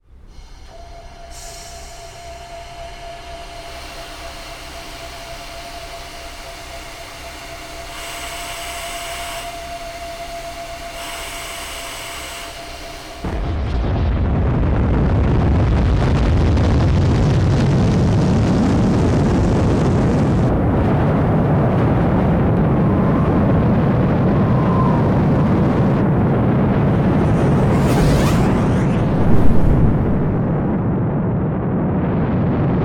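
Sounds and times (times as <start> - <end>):
rocket launch: 13.2 - 32.8.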